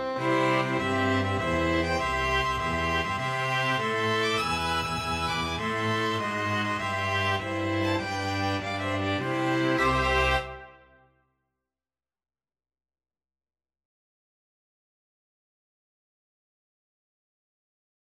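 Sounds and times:
string ensemble playing in Mexico: 0.0s - 10.9s.

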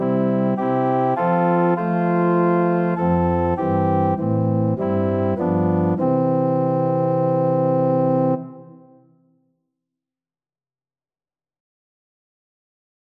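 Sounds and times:
organ: 0.0s - 9.0s.

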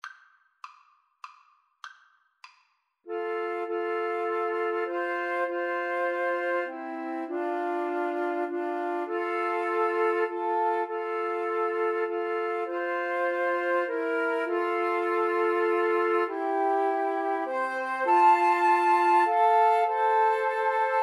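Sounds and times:
flute trio playing a hymn: 3.1s - 21.0s.

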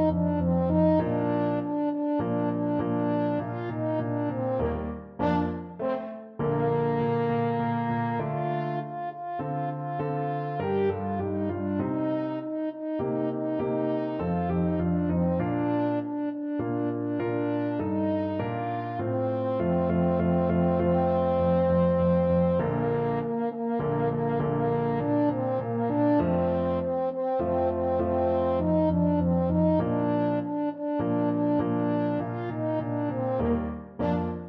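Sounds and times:
french horn fanfare: 0.0s - 34.4s.

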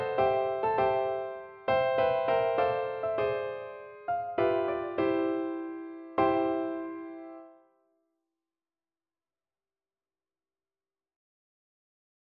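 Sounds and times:
four-hands piano duet: 0.0s - 7.6s.

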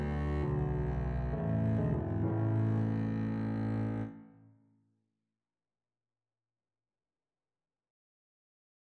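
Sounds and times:
double bass playing a hymn: 0.0s - 4.1s.

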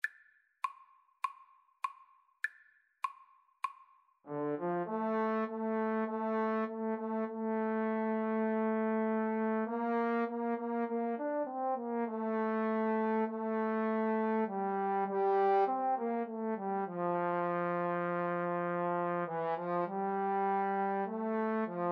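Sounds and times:
trombone duet: 4.3s - 21.9s.

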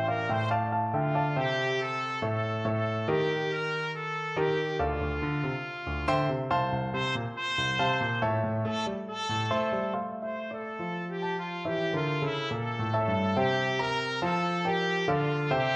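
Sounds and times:
rock trumpet: 0.0s - 15.7s.

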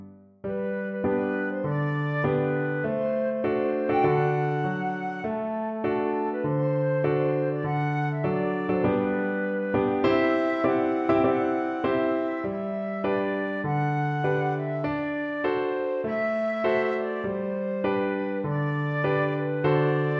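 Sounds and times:
flute: 0.5s - 20.1s.

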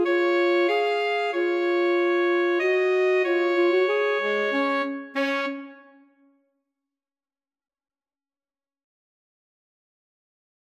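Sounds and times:
alto saxophone duet: 0.0s - 6.2s.

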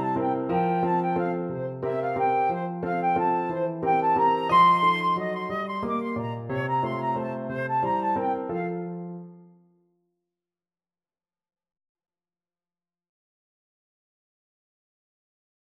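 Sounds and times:
flute playing a waltz: 0.0s - 9.2s.

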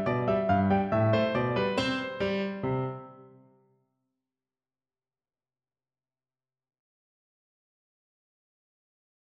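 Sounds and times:
piano playing a bulgar dance: 0.0s - 3.6s.

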